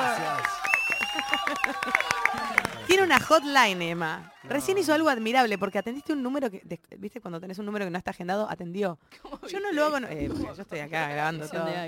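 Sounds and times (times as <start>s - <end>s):
audience applause: 0.0s - 6.0s
laughter: 1.2s - 2.4s
speech: 2.9s - 11.8s.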